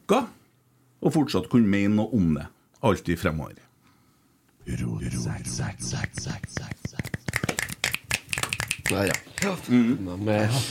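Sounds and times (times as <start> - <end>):
speech: 0.1 - 0.4, 1.0 - 3.7, 4.7 - 6.8, 8.9 - 10.6
finger snapping: 6.5 - 9.5.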